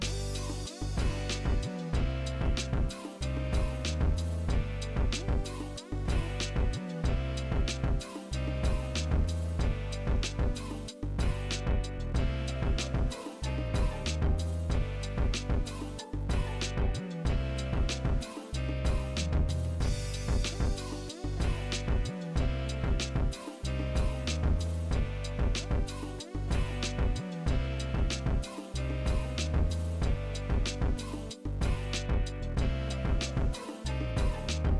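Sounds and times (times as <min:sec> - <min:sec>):
instrumental music: 0:00.0 - 0:34.7.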